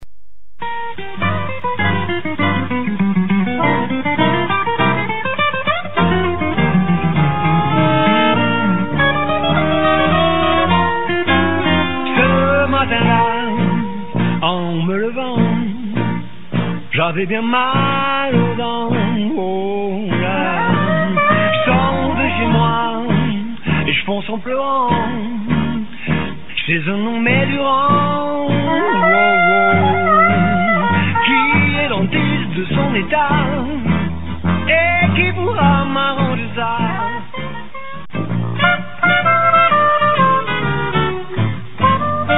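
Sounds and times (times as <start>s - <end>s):
swing music: 0.6s - 42.3s.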